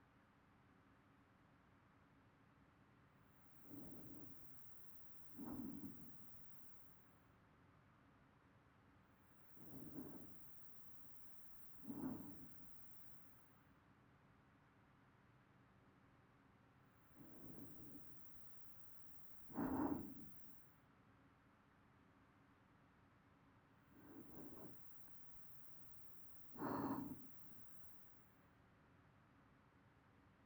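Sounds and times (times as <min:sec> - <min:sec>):
person breathing in sleep loop: 0:05.3 - 0:06.5, 0:09.6 - 0:13.0, 0:17.2 - 0:20.5, 0:24.0 - 0:27.9.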